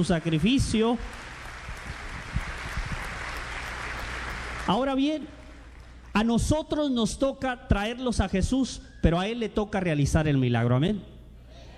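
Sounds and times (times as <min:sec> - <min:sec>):
speech: 0:00.0 - 0:01.3, 0:04.7 - 0:05.4, 0:06.2 - 0:11.1
audience applause: 0:00.0 - 0:06.2.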